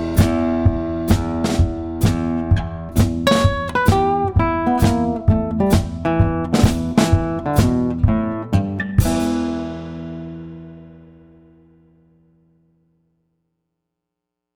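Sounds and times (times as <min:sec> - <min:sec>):
funky blues music: 0:00.0 - 0:10.4.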